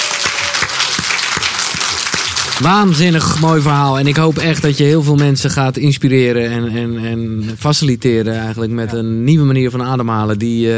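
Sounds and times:
audience applause: 0:00.0 - 0:05.1
speech: 0:02.6 - 0:10.7.

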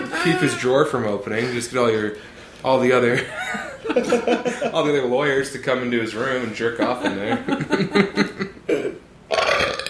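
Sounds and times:
speech: 0:00.2 - 0:08.3
laughter: 0:03.1 - 0:05.1, 0:06.1 - 0:08.6
loud burp: 0:08.7 - 0:09.8.

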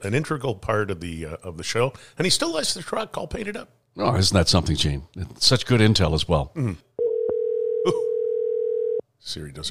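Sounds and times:
speech: 0:00.0 - 0:06.9, 0:07.8 - 0:08.1, 0:09.2 - 0:09.6
phone dial tone while placing a call: 0:07.0 - 0:09.0.

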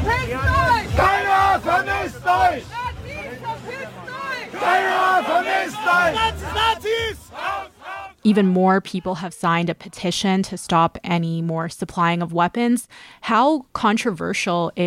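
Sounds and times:
anti-war protesters shouting slogans: 0:00.0 - 0:10.1
speech: 0:08.2 - 0:14.8.

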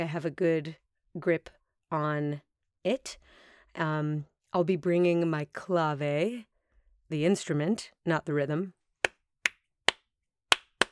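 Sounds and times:
speech: 0:00.0 - 0:06.5, 0:07.1 - 0:08.8
soft hand claps: 0:09.0 - 0:10.9.

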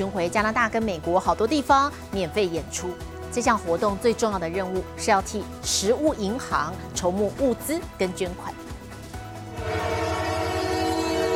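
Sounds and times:
speech: 0:00.0 - 0:08.6
train horn blowing a layered chord: 0:09.5 - 0:11.3.

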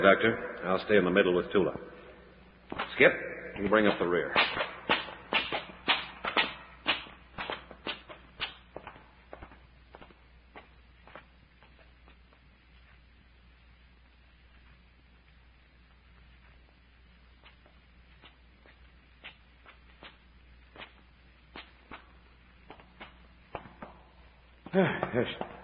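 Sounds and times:
speech: 0:00.0 - 0:02.0, 0:02.7 - 0:04.6
footsteps climbing stone steps, radio drama effect: 0:02.7 - 0:12.4, 0:17.4 - 0:25.6.

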